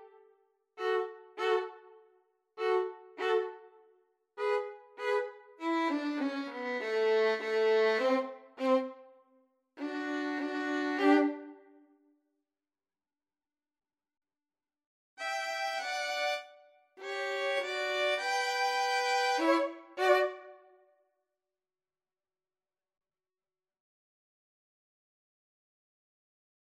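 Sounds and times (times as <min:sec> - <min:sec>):
two violins: 0:00.0 - 0:00.2, 0:00.8 - 0:02.0, 0:02.6 - 0:03.8, 0:04.4 - 0:09.1, 0:09.8 - 0:11.7, 0:15.2 - 0:20.7
cello: 0:00.8 - 0:02.0, 0:02.6 - 0:03.8, 0:04.4 - 0:09.1, 0:09.8 - 0:11.7, 0:15.2 - 0:20.6.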